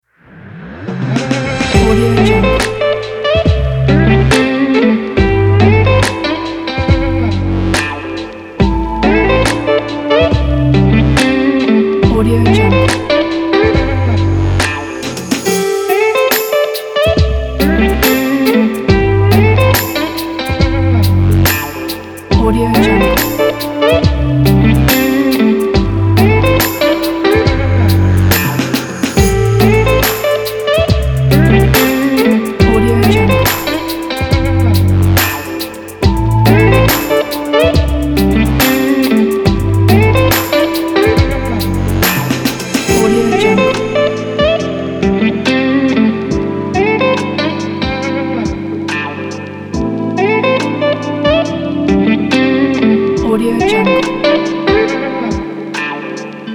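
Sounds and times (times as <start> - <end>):
smoky sexy music: 0.4 - 56.5.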